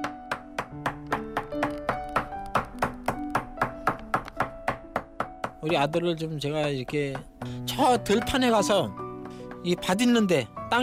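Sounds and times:
hammer tapping while making shoes: 0:00.0 - 0:09.9
soft melodic music: 0:00.0 - 0:10.8
speech: 0:05.6 - 0:09.0, 0:09.6 - 0:10.8.

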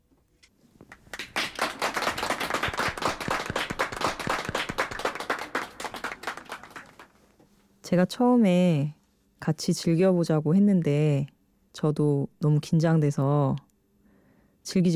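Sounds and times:
hand clapping from a few people: 0:00.9 - 0:07.2
speech: 0:07.9 - 0:13.6, 0:14.6 - 0:14.9.

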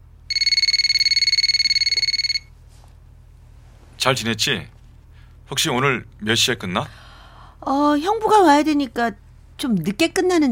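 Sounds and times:
telephone ringing: 0:00.3 - 0:02.5
speech: 0:04.0 - 0:04.8, 0:05.5 - 0:07.0, 0:07.6 - 0:10.5.

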